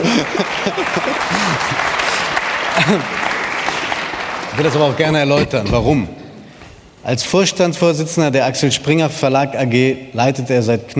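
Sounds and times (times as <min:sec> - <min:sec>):
audience clapping: 0:00.0 - 0:05.6
speech: 0:02.9 - 0:03.2, 0:04.6 - 0:06.2, 0:07.0 - 0:10.9.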